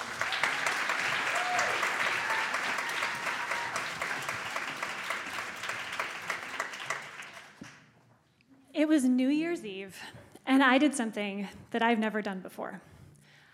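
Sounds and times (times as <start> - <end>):
audience applause welcoming a speaker at a talk event: 0.0 - 7.8
speech: 8.8 - 12.9.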